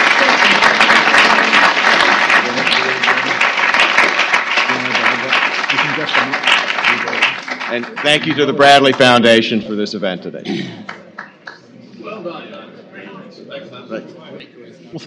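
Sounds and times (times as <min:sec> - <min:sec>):
audience round of applause: 0:00.0 - 0:09.6, 0:10.8 - 0:11.6
speech: 0:07.8 - 0:10.9.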